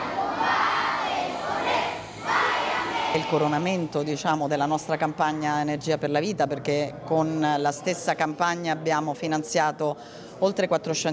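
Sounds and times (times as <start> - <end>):
children singing the national anthem: 0.0 - 4.0
speech: 3.1 - 11.1.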